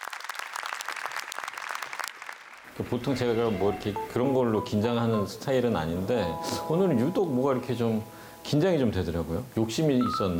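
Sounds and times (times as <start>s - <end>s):
audience applause: 0.0s - 3.3s
speech: 2.8s - 10.3s.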